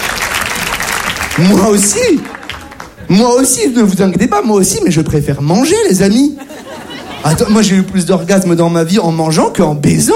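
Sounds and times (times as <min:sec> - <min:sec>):
audience applause: 0:00.0 - 0:03.1
speech: 0:01.4 - 0:02.4, 0:03.1 - 0:06.6, 0:07.2 - 0:10.1
laughter: 0:01.8 - 0:03.2, 0:06.0 - 0:08.0.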